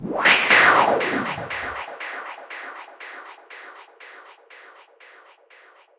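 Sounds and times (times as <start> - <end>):
sweep sound: 0.0 - 2.0.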